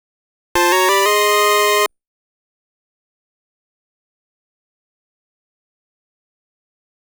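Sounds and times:
get item fanfare: 0.6s - 1.9s.

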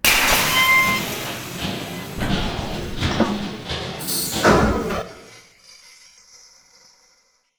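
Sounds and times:
car being compacted: 0.0s - 5.3s.

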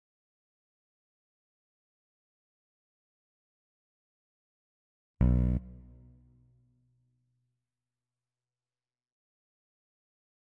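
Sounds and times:
town intro bass: 5.2s - 6.3s.

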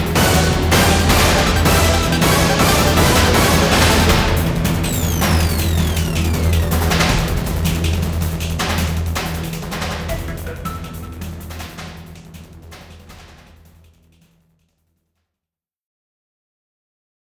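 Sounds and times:
abnormal atmosphere: 0.0s - 13.1s.

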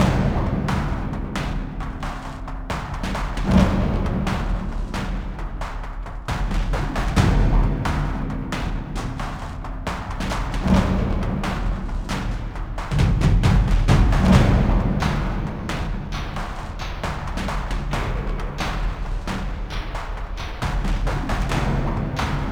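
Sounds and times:
training drums: 0.0s - 22.5s.

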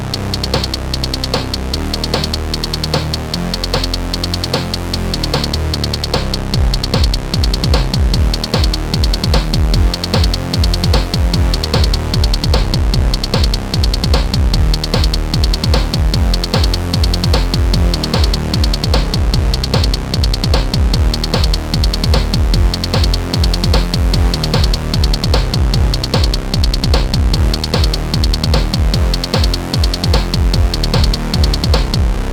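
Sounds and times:
instrumental music: 0.1s - 32.1s.

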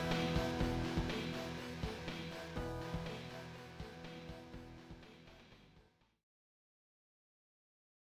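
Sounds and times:
background music: 0.0s - 5.8s.

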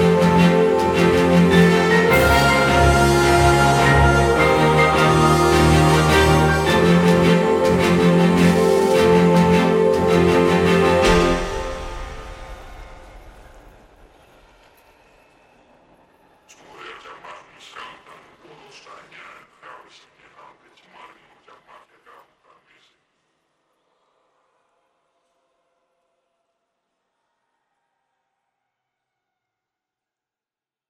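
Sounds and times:
victory jingle: 0.0s - 15.4s.

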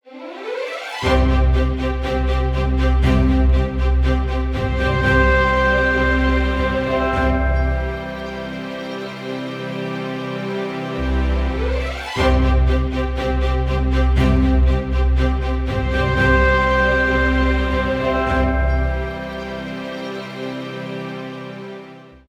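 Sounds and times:
victory music loop: 0.8s - 21.9s.

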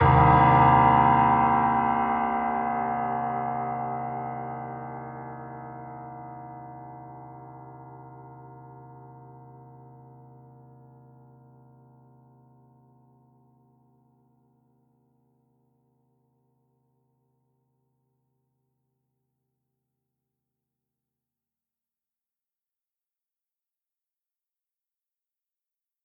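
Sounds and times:
piano theme: 0.0s - 9.5s.

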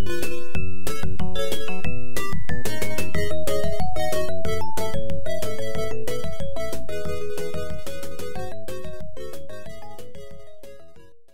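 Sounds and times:
in-game music: 0.0s - 11.3s.

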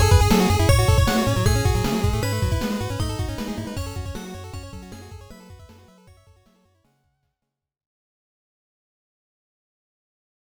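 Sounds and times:
8-bit music arrangement: 0.0s - 6.3s.

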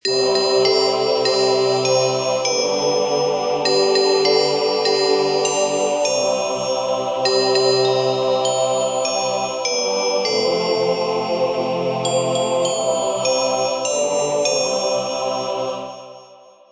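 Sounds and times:
birthday music loop: 0.0s - 15.2s.

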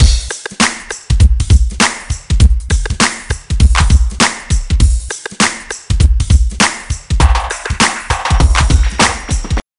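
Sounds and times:
music from a boombox: 0.0s - 9.6s.

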